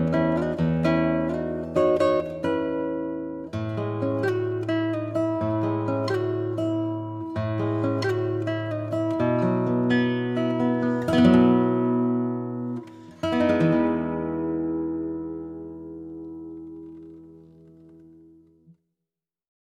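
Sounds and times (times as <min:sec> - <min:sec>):
Lowden acoustic guitar: 0:00.0 - 0:18.8.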